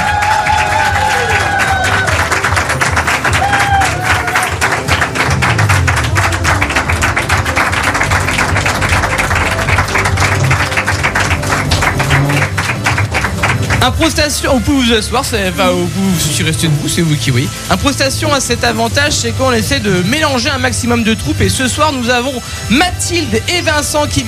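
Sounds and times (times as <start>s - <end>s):
audience cheering: 0.0s - 8.0s, 8.6s - 13.3s
audience applauding: 0.0s - 19.2s
speech: 13.8s - 24.2s.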